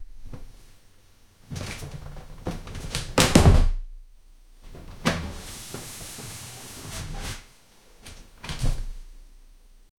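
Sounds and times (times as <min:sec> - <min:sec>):
closet opening: 0:01.5 - 0:03.8, 0:04.6 - 0:09.1.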